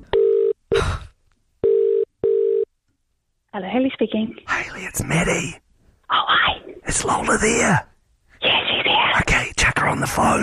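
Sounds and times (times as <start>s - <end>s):
phone line steady electronic tone: 0.1s - 0.6s, 1.6s - 2.7s
speech: 3.6s - 8.6s, 9.8s - 10.4s.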